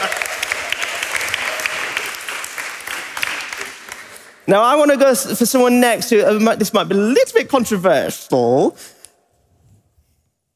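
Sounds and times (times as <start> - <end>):
audience applause welcoming someone to the front: 0.0 - 4.5
speech: 4.5 - 9.0.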